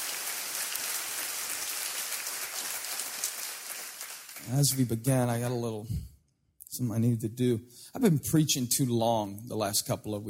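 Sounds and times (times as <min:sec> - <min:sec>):
crowd clapping: 0:00.0 - 0:05.1
speech: 0:04.4 - 0:06.1, 0:06.8 - 0:10.2.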